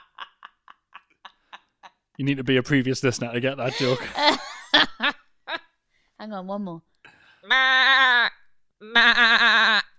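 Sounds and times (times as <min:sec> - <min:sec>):
speech: 0:02.2 - 0:05.2, 0:06.3 - 0:09.8
laughter: 0:03.6 - 0:05.6
person imitating a lamb bleating: 0:07.5 - 0:09.9.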